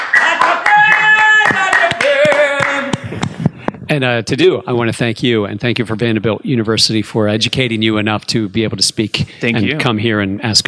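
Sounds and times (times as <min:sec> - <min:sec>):
hands clapping: 0:00.0 - 0:03.4
speech: 0:03.9 - 0:10.6.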